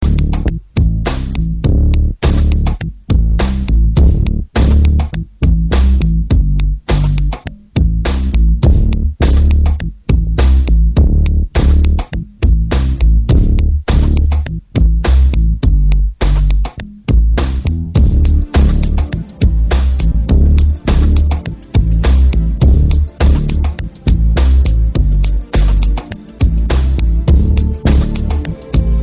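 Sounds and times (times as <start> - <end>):
bass: 0.0 - 29.0.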